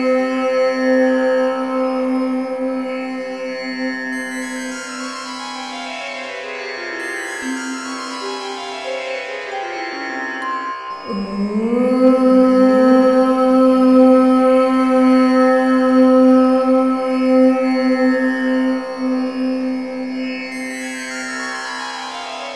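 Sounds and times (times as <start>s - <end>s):
woman chanting om: 0.0s - 5.9s, 11.0s - 21.6s.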